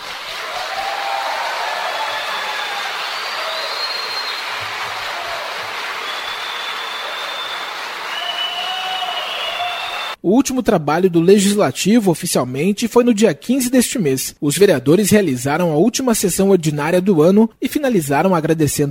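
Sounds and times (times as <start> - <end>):
standing ovation applause in council chamber: 0.0 - 10.2
speech: 10.2 - 18.8.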